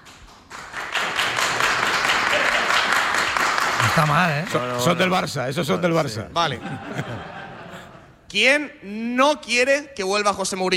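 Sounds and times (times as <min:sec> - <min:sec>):
audience clapping: 0:00.0 - 0:05.2
speech: 0:04.0 - 0:07.4, 0:08.3 - 0:10.7
laughter: 0:05.6 - 0:08.2.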